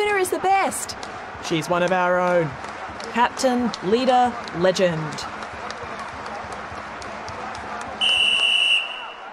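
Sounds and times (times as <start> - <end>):
speech: 0.2 - 5.3
referee's full-time whistle: 8.0 - 9.3.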